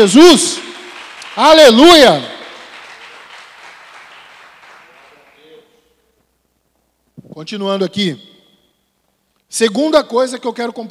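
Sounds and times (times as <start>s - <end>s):
speech: 0.0s - 0.7s, 1.4s - 2.4s, 7.4s - 8.3s, 9.5s - 10.8s
audience applause: 0.9s - 5.6s.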